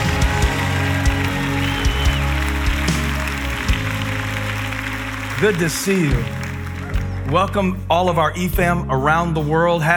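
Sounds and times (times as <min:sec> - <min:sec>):
audience clapping hands: 0:00.0 - 0:07.9
speech: 0:05.4 - 0:06.4, 0:07.3 - 0:09.9.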